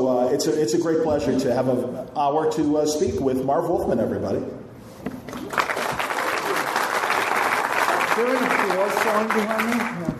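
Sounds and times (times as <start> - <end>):
speech: 0.4 - 4.6, 8.2 - 10.1
audience applause: 5.3 - 10.0.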